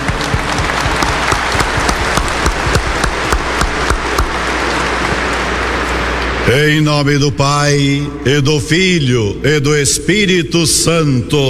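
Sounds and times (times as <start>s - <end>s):
warm applause from audience: 0.0s - 6.2s
speech: 6.5s - 11.4s.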